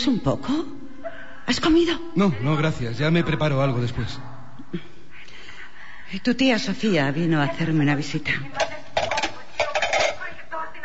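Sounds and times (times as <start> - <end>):
speech: 0.0 - 0.8, 1.5 - 5.0, 6.1 - 8.6
plates and dishes clinking in a home kitchen: 8.6 - 10.3.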